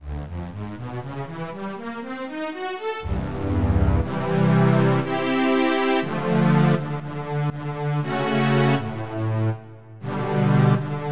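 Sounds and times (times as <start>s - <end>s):
strings: 3.0s - 11.1s.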